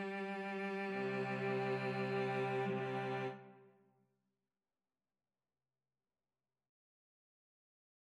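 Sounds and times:
cello: 0.0 - 3.8
violin: 0.0 - 3.8.

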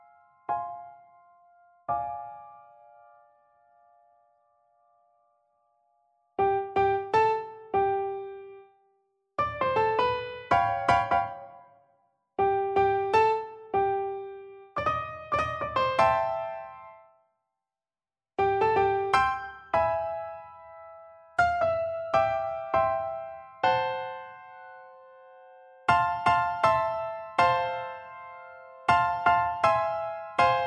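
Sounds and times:
jazzy birthday song piano duet: 6.4 - 8.6, 9.4 - 11.6, 12.4 - 17.0, 18.4 - 30.6.

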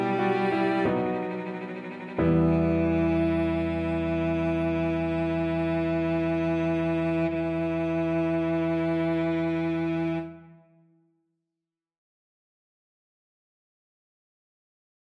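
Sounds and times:
violoncello: 0.0 - 10.8.

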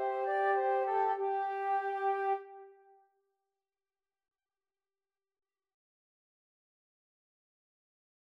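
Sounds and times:
flute duet: 0.0 - 2.9.

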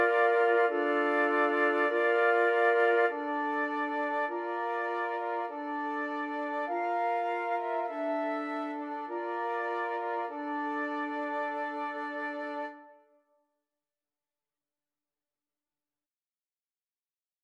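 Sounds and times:
flute quartet: 0.0 - 13.0.

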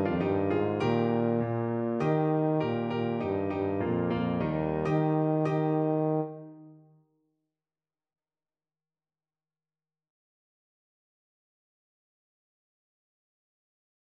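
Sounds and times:
tuba playing: 0.0 - 6.9.

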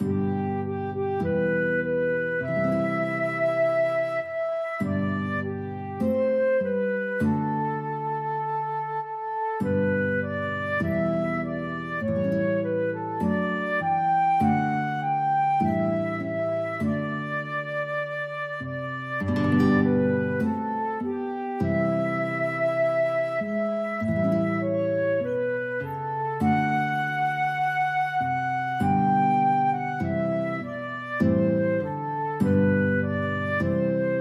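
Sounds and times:
flute and guitar duet: 0.0 - 34.1.

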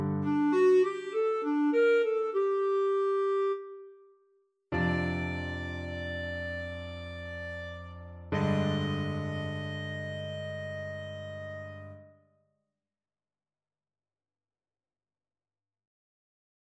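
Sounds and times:
clarinet boogie: 0.0 - 3.9, 4.8 - 12.0.

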